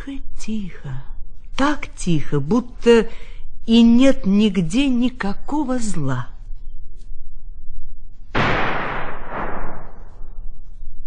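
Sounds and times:
speech: 0:00.0 - 0:06.3
gunshot in a forest: 0:08.4 - 0:10.2.

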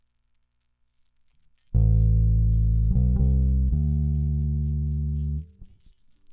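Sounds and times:
bass: 0:01.7 - 0:06.3.

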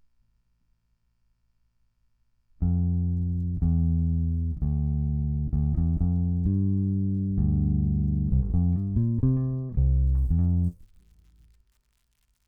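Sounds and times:
bass: 0:02.5 - 0:11.7.

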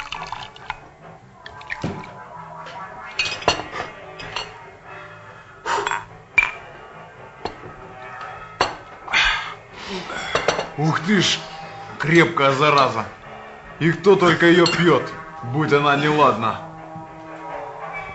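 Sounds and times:
liquid pouring into glasses: 0:00.0 - 0:00.9, 0:01.5 - 0:02.2
glasses clinking in a toast: 0:03.2 - 0:04.6, 0:05.9 - 0:06.7, 0:07.4 - 0:09.0, 0:10.2 - 0:10.8, 0:14.6 - 0:15.1
speech: 0:10.8 - 0:13.2, 0:13.8 - 0:16.7.

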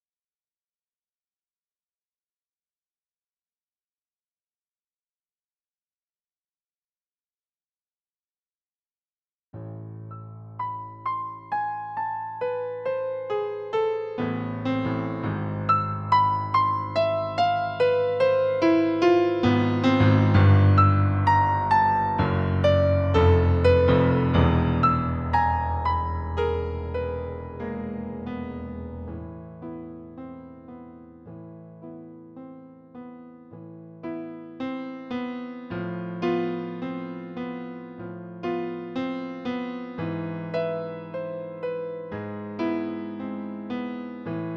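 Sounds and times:
piano: 0:09.5 - 0:44.5.

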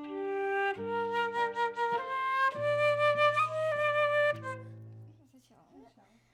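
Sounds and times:
flute: 0:00.1 - 0:04.8.

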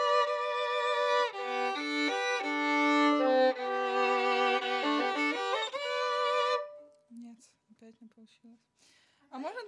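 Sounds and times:
viola: 0:00.0 - 0:07.2.

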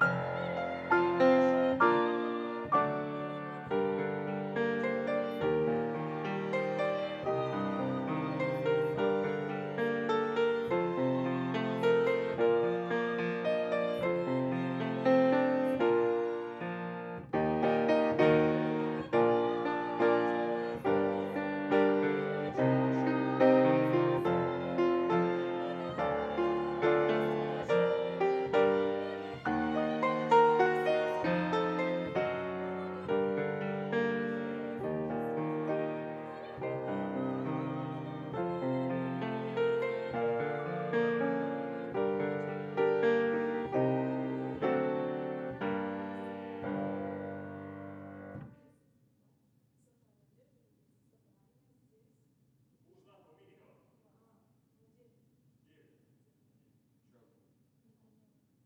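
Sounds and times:
piano: 0:00.0 - 0:48.8.

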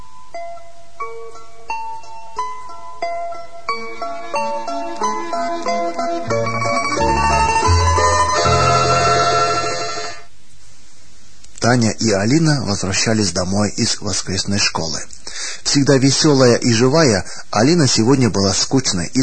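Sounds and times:
church bells ringing: 0:04.3 - 0:10.1
speech: 0:11.7 - 0:19.2.

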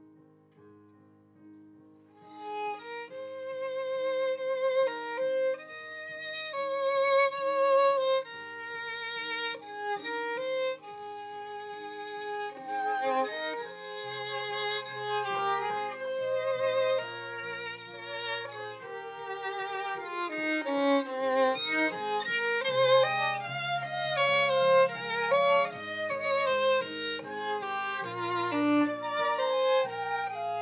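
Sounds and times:
viola: 0:02.2 - 0:30.6.

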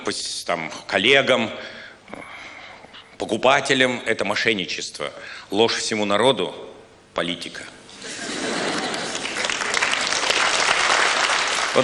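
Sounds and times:
speech: 0:00.1 - 0:02.2, 0:03.2 - 0:07.8
laughter: 0:07.9 - 0:10.0
audience applause: 0:08.5 - 0:11.8.

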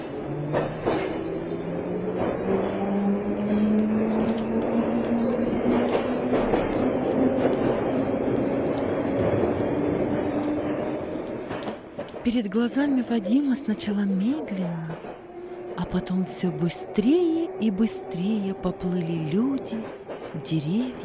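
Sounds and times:
train pulling away from a station, engine tone rising: 0:00.0 - 0:10.9, 0:12.8 - 0:20.0
faint rail clatter: 0:00.0 - 0:12.5, 0:14.3 - 0:16.0, 0:19.3 - 0:21.0
speech: 0:12.3 - 0:15.0, 0:15.9 - 0:21.0.

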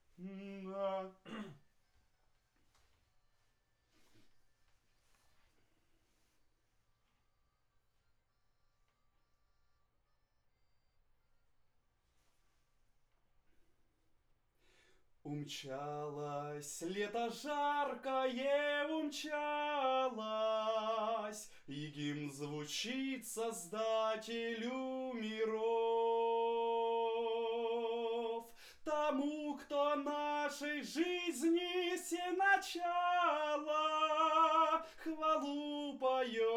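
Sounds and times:
vocal recorded with condenser microphone: 0:00.1 - 0:01.6, 0:15.3 - 0:36.5.

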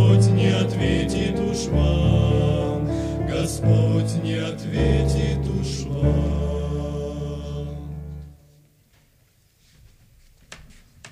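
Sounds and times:
person singing: 0:00.0 - 0:08.3.

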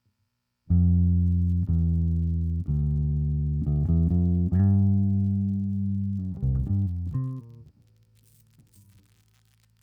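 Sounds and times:
bass: 0:00.7 - 0:09.8.

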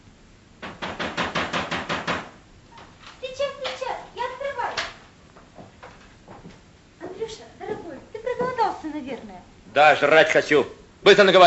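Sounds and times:
knocking on a door: 0:00.6 - 0:02.4
speech: 0:09.4 - 0:11.4.

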